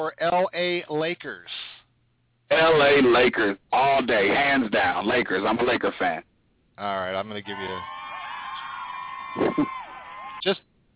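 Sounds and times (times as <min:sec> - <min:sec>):
speech: 0:00.0 - 0:01.5, 0:02.5 - 0:08.0, 0:10.4 - 0:10.7
crowd cheer sound effect: 0:07.4 - 0:10.5.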